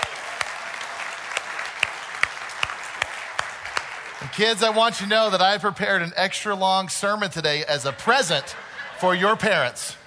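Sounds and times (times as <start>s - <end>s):
audience applause: 0.0s - 5.4s
speech: 4.3s - 10.0s
laughter: 7.7s - 10.0s.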